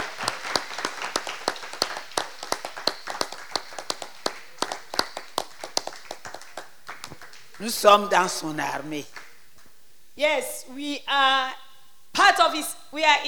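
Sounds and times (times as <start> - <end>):
worshippers clapping for the Lord in a French and English service: 0.0 - 9.8
speech: 7.6 - 9.2, 10.2 - 11.6, 12.2 - 13.2.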